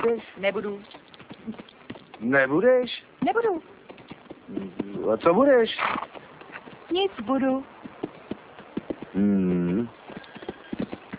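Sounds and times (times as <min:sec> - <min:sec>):
speech: 0:00.0 - 0:03.8, 0:04.5 - 0:06.2, 0:06.9 - 0:07.8, 0:09.2 - 0:10.0
voice imitating a galloping horse's clip-clop with tongue clicks: 0:00.8 - 0:02.2, 0:09.8 - 0:11.1
voiced whinny-like sound: 0:09.2 - 0:09.9.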